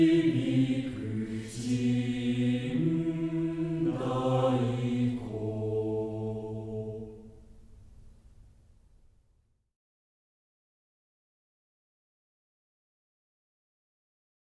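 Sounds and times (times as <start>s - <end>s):
mixed choir singing: 0.0s - 7.7s.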